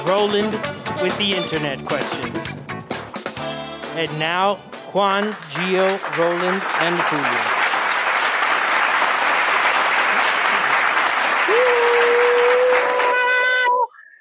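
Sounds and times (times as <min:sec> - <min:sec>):
speech: 0:00.1 - 0:02.7, 0:04.0 - 0:07.6
applause: 0:05.0 - 0:13.7.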